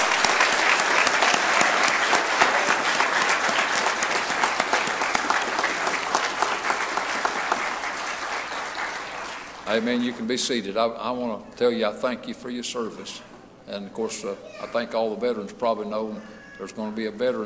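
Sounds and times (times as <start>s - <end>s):
audience applauding: 0.0s - 10.4s
speech: 9.8s - 17.4s.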